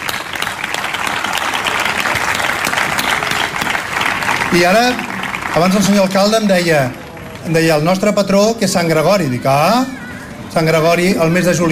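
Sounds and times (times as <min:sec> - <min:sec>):
audience applause: 0:00.0 - 0:07.9
speech: 0:04.5 - 0:11.6.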